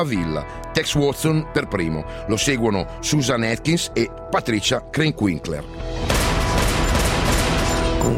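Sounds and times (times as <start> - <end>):
speech: 0.0 - 6.1
loud gunshots fired at a man: 6.0 - 8.1.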